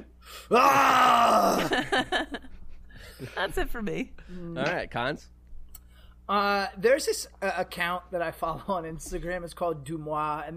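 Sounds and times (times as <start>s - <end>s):
speech: 0.3s - 2.4s, 3.0s - 5.4s, 6.3s - 10.5s
recruit's war face scream: 0.5s - 1.9s
recruit grunting: 0.5s - 2.0s.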